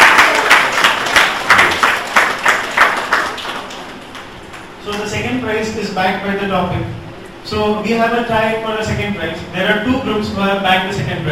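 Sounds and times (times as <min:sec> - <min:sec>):
rhythmic audience clapping: 0:00.0 - 0:05.4
speech: 0:05.6 - 0:11.3.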